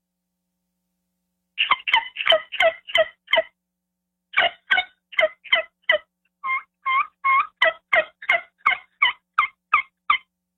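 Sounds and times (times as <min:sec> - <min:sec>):
yelps on a hand-operated turkey yelper call: 0:01.6 - 0:03.5, 0:04.4 - 0:10.3.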